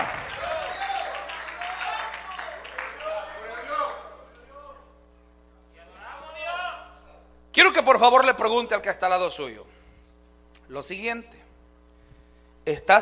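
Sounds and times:
audience clapping: 0.0s - 4.5s
steady hum: 0.0s - 12.9s
speech: 7.6s - 9.7s, 10.7s - 11.4s, 12.7s - 12.9s.

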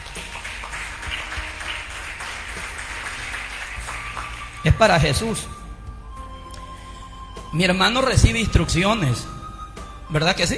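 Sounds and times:
audience applause: 0.0s - 5.6s
speech: 4.6s - 5.6s, 7.5s - 9.3s, 10.1s - 10.5s.

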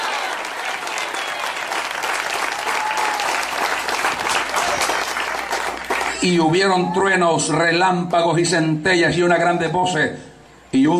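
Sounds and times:
audience applauding: 0.0s - 6.8s
speech: 6.2s - 10.9s.

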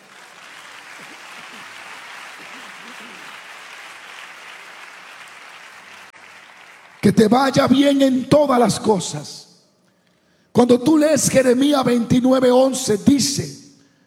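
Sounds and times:
audience applauding: 0.0s - 7.5s
speech: 2.4s - 3.4s, 7.0s - 9.4s, 10.6s - 13.6s.

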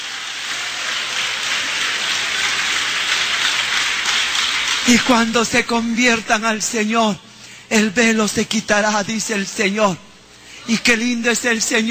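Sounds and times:
crowd clapping: 0.0s - 6.7s
speech: 4.9s - 11.8s.

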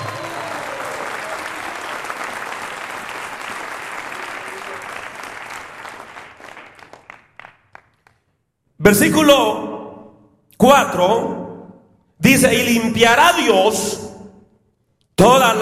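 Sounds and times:
audience applauding: 0.0s - 8.3s
speech: 8.8s - 9.7s, 10.6s - 11.4s, 12.3s - 14.0s.

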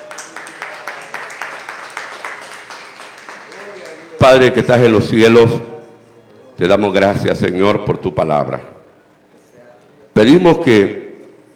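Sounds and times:
church audience clapping: 0.0s - 4.7s
speech: 4.3s - 5.7s, 6.6s - 8.8s, 10.2s - 11.0s.

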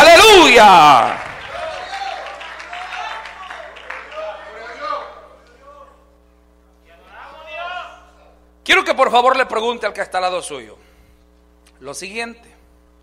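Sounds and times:
audience applause: 0.7s - 5.5s
speech: 8.7s - 10.9s, 11.8s - 12.6s.

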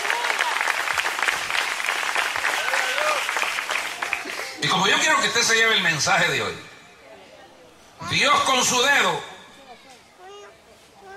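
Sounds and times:
audience applause: 0.0s - 4.6s
speech: 4.6s - 6.7s, 8.1s - 9.3s.

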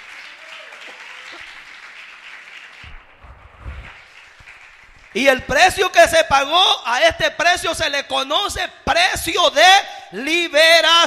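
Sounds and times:
audience applauding: 0.0s - 5.5s
speech: 5.2s - 11.0s.

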